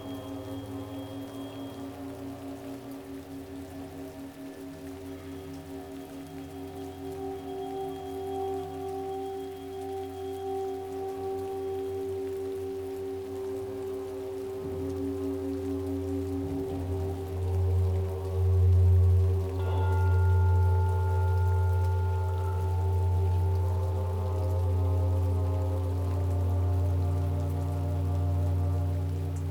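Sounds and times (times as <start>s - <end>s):
rain: 0.0s - 29.4s.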